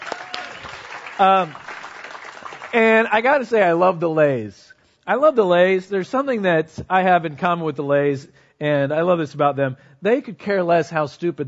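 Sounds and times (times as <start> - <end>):
high-pitched whoop: 0.0 - 0.8
crowd applause: 0.0 - 3.3
speech: 1.2 - 1.6, 2.7 - 11.4.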